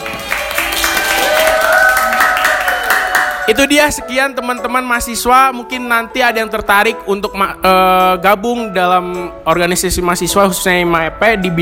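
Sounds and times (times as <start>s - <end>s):
applause: 0.0s - 3.7s
speech: 3.5s - 11.5s.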